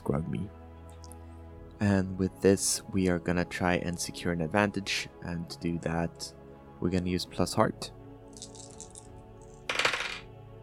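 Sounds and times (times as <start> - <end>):
speech: 1.8 - 8.5
dice clattering and tumbling across a hard surface: 8.4 - 10.3.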